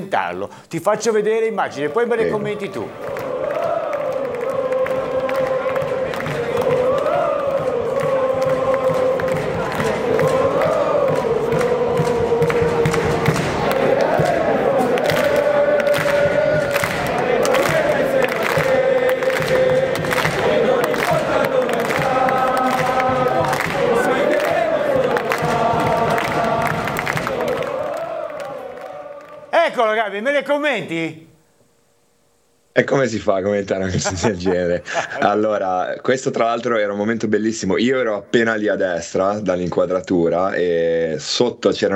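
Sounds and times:
speech: 0:00.0 - 0:03.2, 0:32.8 - 0:41.9
football fans chanting in stadium: 0:01.0 - 0:31.2
laughter: 0:33.8 - 0:35.6.

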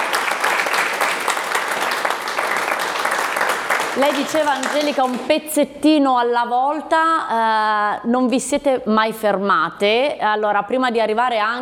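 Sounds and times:
audience applause: 0:00.0 - 0:05.3
speech: 0:04.0 - 0:11.6.

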